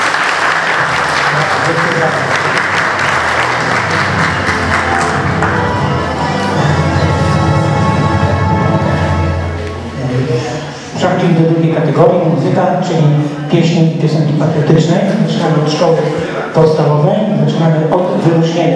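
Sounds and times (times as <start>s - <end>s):
audience applause: 0.0s - 6.8s
crowd murmur: 0.0s - 17.5s
speech: 11.9s - 18.7s.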